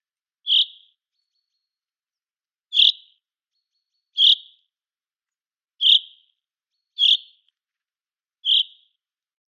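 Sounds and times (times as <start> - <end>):
common chaffinch short bright calls: 0.4 - 1.7, 2.7 - 4.6, 5.8 - 7.5, 8.4 - 8.9.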